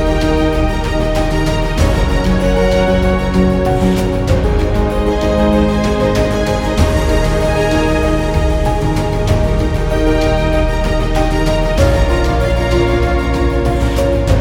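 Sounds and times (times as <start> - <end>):
documentary piano music: 0.0 - 14.3.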